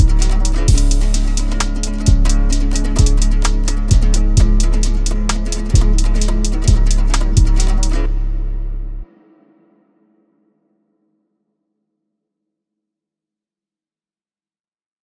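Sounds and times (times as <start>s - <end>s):
Kyrgyz komuz remix: 0.0s - 9.0s.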